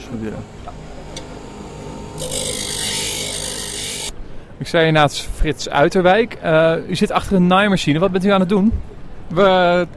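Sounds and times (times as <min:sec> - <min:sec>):
speech: 0:00.1 - 0:01.0, 0:02.2 - 0:02.9, 0:04.6 - 0:09.9
coarse grinder sharpening a chisel: 0:02.2 - 0:04.1.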